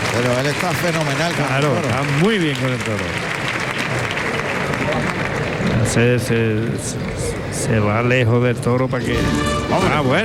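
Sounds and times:
bullring crowd applauding: 0.0s - 7.9s
speech: 0.2s - 3.4s, 4.9s - 10.2s.

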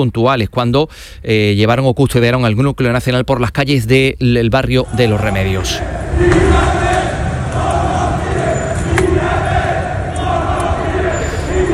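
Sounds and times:
speech: 0.0s - 6.8s
demonstrators shouting and chanting at a street protest: 4.8s - 11.7s.

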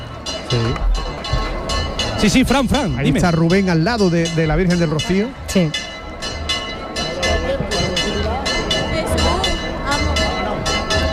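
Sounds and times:
church bells pealing: 0.0s - 11.1s
large crowd murmuring: 0.0s - 11.1s
speech: 0.5s - 1.0s, 2.2s - 5.9s.

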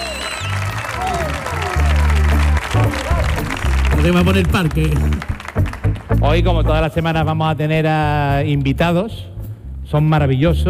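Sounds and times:
studio audience applause and cheering: 0.0s - 6.5s
music with a steady bass line: 0.0s - 10.6s
speech: 4.0s - 5.3s, 6.2s - 9.3s, 9.9s - 10.6s.

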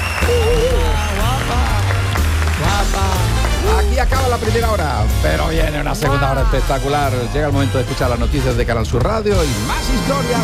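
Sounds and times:
audience applause: 0.0s - 4.9s
speech: 4.0s - 10.4s.

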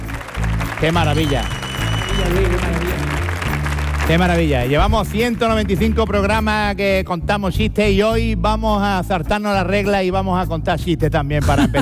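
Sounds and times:
audience applause: 0.0s - 6.4s
speech: 0.8s - 1.6s, 2.2s - 3.2s, 4.1s - 11.8s.

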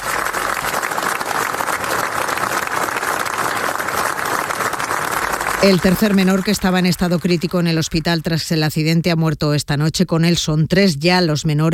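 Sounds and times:
long applause after minute of silence: 0.0s - 8.4s
speech: 5.6s - 11.7s.

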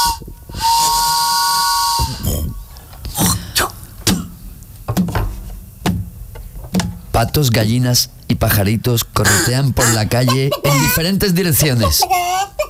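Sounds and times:
steam train whistle: 0.0s - 2.3s
hissing steam: 0.0s - 2.6s
steam venting and clanking as the train pulls in: 0.0s - 7.5s
speech: 7.2s - 12.5s
laughter: 9.8s - 12.6s.

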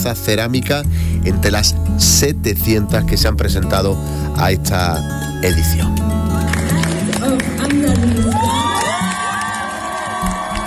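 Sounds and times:
speech: 0.0s - 6.6s
audience ovation, applause: 6.4s - 10.6s.

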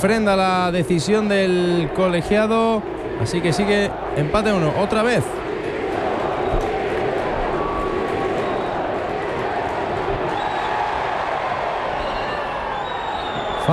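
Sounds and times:
speech: 0.0s - 5.5s
stadium crowd chanting for board's resignation: 1.0s - 13.7s.

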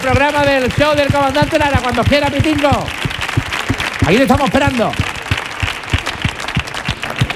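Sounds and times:
speech: 0.0s - 3.0s, 4.0s - 5.1s
crowd applauding with rhythmic heavy claps: 0.0s - 7.3s.

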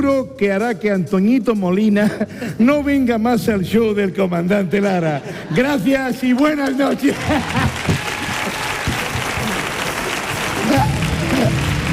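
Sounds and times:
speech: 0.0s - 7.9s
laughter: 5.0s - 11.9s
applause for actors: 6.6s - 11.9s.

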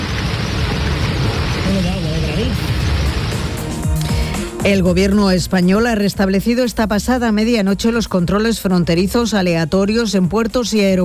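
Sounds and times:
heavy rain downpour: 0.0s - 5.3s
speech: 4.6s - 11.0s.

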